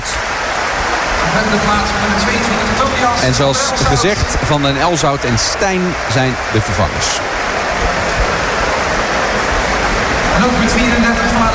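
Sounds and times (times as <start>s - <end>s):
football crowd applauding a substituted player leaving the pitch: 0.0s - 11.5s
speech: 1.4s - 7.6s, 10.4s - 11.5s.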